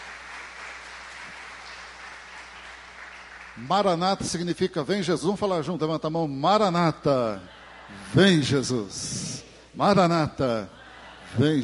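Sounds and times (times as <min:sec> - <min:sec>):
audience applauding: 0:00.0 - 0:04.3
speech: 0:03.6 - 0:11.6
laughter: 0:07.3 - 0:08.8, 0:10.4 - 0:11.6.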